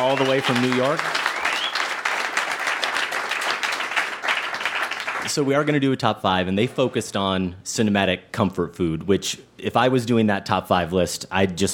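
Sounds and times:
speech: 0.0s - 1.2s, 5.2s - 11.7s
audience applause: 0.0s - 5.3s.

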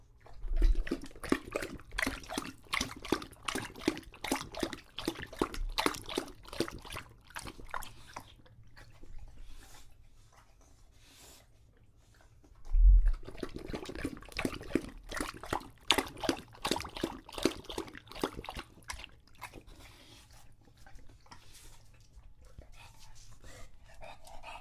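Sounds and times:
English Bulldog drinking with wet laps: 0.0s - 24.5s
English Bulldog soft breathing: 7.8s - 13.5s, 19.6s - 24.5s.

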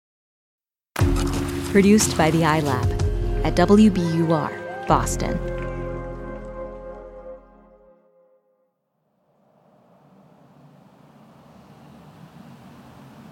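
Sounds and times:
speech: 1.7s - 5.6s
traffic noise heard from inside car on the Williamsburg Bridge: 9.2s - 13.3s.

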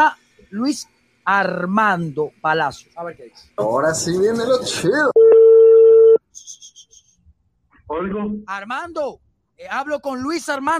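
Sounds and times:
speech: 0.0s - 5.2s, 7.9s - 10.7s
low-pitched telephone tone: 5.2s - 6.2s
faint high chirping pulses: 6.3s - 7.3s.

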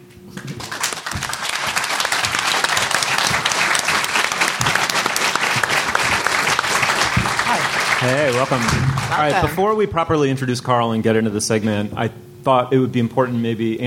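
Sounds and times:
audience applause: 0.6s - 9.6s
speech: 8.0s - 13.8s.

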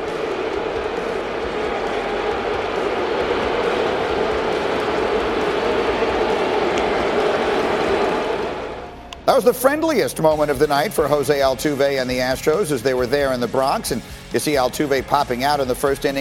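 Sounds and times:
huge stadium crowd booing: 0.0s - 16.1s
speech: 9.4s - 16.1s.

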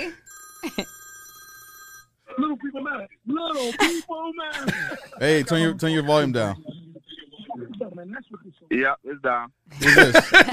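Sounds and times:
speech: 0.0s - 1.0s, 2.8s - 6.7s, 8.0s - 10.5s
telephone ringing on a radio call-in show: 0.0s - 2.2s
laughter: 4.6s - 6.7s, 9.7s - 10.5s.

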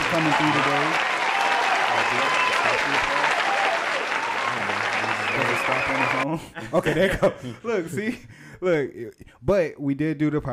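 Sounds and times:
applause sound effect: 0.0s - 6.3s
speech: 0.1s - 1.1s, 2.0s - 3.5s, 5.4s - 10.5s
laughter: 4.3s - 8.4s.

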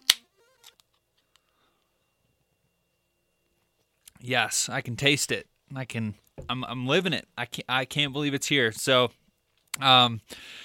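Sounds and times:
beer being cracked open: 0.0s - 1.0s
speech: 4.2s - 9.2s, 9.8s - 10.6s.

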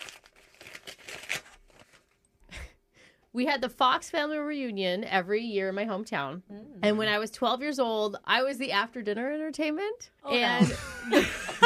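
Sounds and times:
paper envelope being torn open: 0.0s - 2.2s
speech: 3.3s - 11.6s
laughter: 10.4s - 11.6s.

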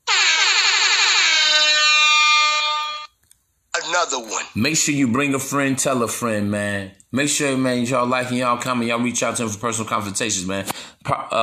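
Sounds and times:
alarm sound effect: 0.0s - 3.1s
speech: 4.0s - 11.4s.

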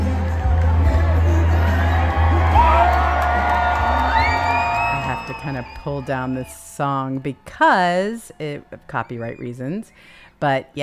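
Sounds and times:
large rally crowd cheering and whooping: 0.0s - 9.5s
scattered high shouts: 1.1s - 9.6s
speech: 5.8s - 10.8s.

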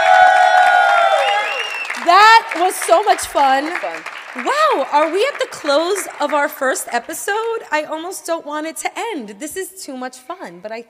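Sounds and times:
audience applause: 0.0s - 7.6s
speech: 2.1s - 10.8s.

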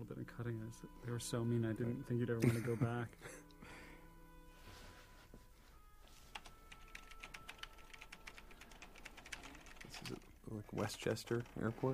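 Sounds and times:
speech: 0.0s - 3.8s, 10.1s - 11.9s
exaggerated keyboard typing sound effect in a film scene: 6.3s - 11.9s.

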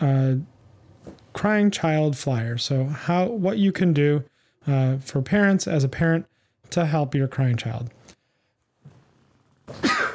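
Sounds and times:
speech: 1.4s - 8.0s, 9.7s - 9.9s
person sneezing: 9.7s - 10.1s.

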